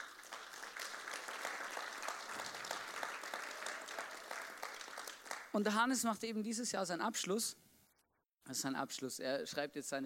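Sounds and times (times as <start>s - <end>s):
crowd applause: 0.0s - 5.5s
speech: 5.5s - 7.6s, 8.5s - 10.0s.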